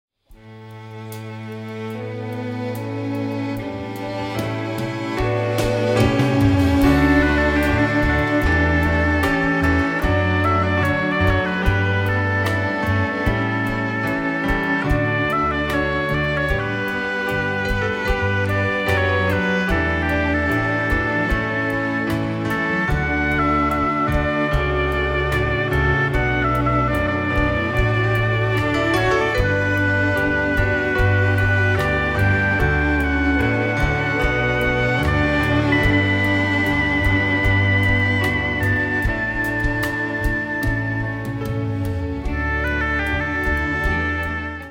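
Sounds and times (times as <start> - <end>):
orchestra: 0.3 - 44.6.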